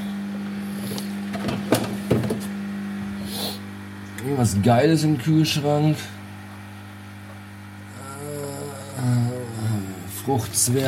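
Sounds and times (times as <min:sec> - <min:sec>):
coffee machine humming while frothing milk: 0:00.0 - 0:10.8
speech: 0:04.3 - 0:06.2, 0:10.3 - 0:10.8.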